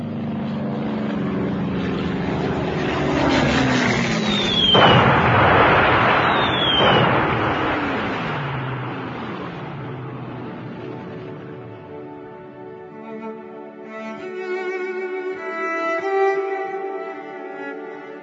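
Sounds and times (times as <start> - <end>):
aircraft engines droning during a wartime air raid: 0.0 - 18.2
falling bomb whistles: 3.9 - 9.9
bomb explosions on a flat: 4.0 - 12.1.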